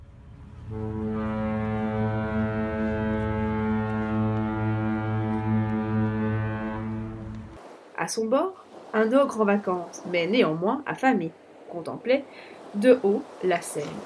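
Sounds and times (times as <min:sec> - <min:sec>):
ocean liner horn blast: 0:00.4 - 0:07.6
speech: 0:00.7 - 0:01.0, 0:08.1 - 0:14.0.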